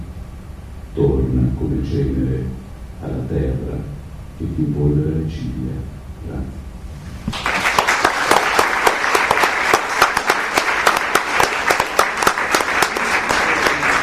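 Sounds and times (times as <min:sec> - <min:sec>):
speech: 0:01.0 - 0:06.6
audience applause: 0:07.3 - 0:14.0.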